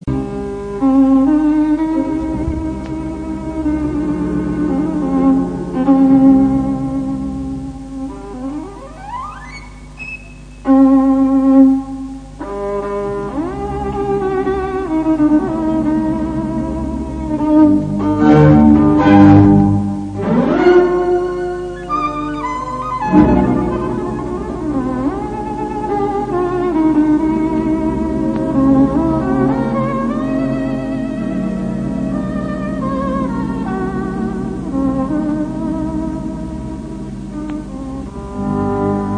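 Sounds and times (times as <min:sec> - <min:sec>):
violin: 0:00.0 - 0:39.1.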